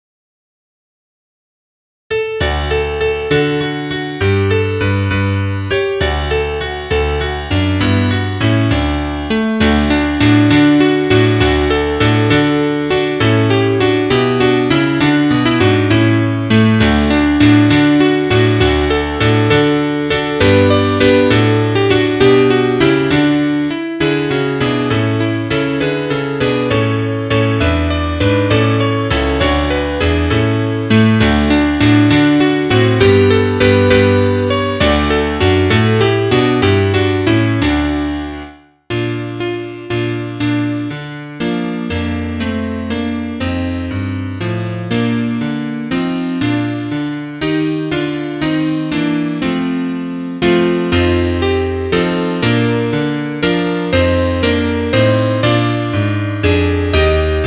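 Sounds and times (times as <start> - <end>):
solo piano: 2.1 - 57.4.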